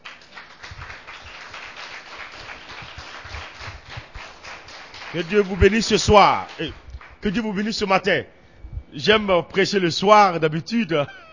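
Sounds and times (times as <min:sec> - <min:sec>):
church congregation applauding during worship: 0:00.0 - 0:07.8
speech: 0:05.1 - 0:11.2.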